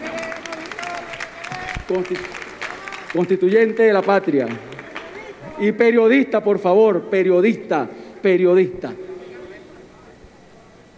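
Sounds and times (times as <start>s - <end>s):
applause for a comrade guest at a political meeting: 0.0s - 5.5s
speech: 1.9s - 2.4s, 3.1s - 4.7s, 5.6s - 9.0s.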